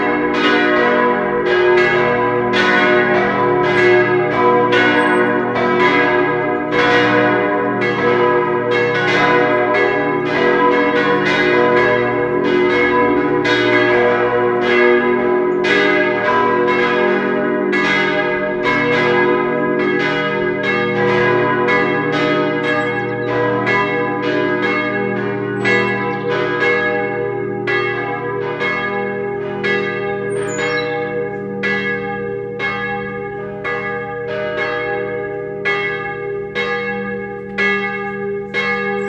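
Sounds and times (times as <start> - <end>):
bell concert: 0.0 - 39.0.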